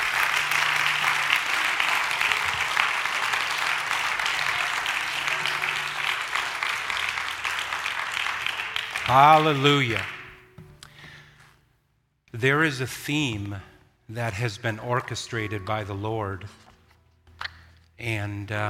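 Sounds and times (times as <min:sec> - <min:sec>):
audience clapping hands in praise: 0:00.0 - 0:10.6
speech: 0:09.1 - 0:10.2, 0:12.4 - 0:16.6, 0:18.0 - 0:18.6.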